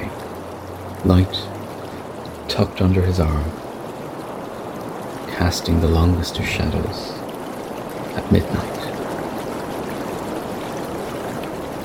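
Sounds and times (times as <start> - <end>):
running water of a stream: 0.0 - 11.8
speech: 1.0 - 1.6, 2.5 - 3.6, 5.4 - 7.2, 8.2 - 8.8.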